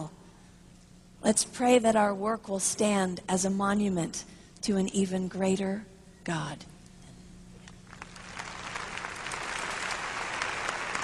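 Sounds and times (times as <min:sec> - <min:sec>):
speech: 0:01.3 - 0:06.7
audience clapping: 0:07.6 - 0:11.0.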